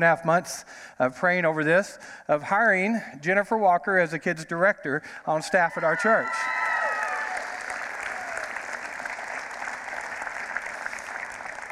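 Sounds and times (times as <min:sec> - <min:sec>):
speech: 0:00.0 - 0:06.6
audience clapping: 0:06.4 - 0:11.7.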